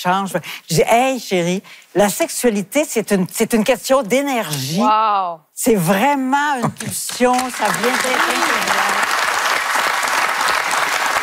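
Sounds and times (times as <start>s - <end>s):
speech: 0.0s - 9.0s
audience applause: 7.1s - 11.2s.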